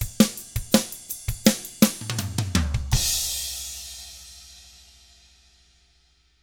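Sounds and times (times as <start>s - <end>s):
rock drums: 0.0s - 4.4s.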